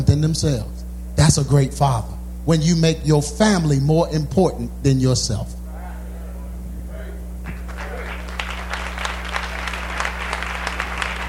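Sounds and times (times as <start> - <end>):
speech: 0.2 - 5.6
audience hand clapping: 7.4 - 11.2.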